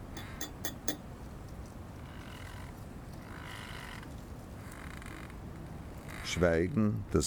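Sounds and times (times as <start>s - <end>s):
teacup clattering as it is set down: 0.1s - 1.0s
speech: 6.3s - 7.2s.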